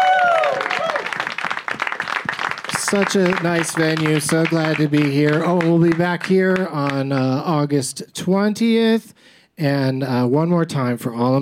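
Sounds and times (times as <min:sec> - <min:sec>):
person cheering or whooping: 0:00.0 - 0:01.2
audience applause: 0:00.0 - 0:07.4
speech: 0:02.9 - 0:11.4.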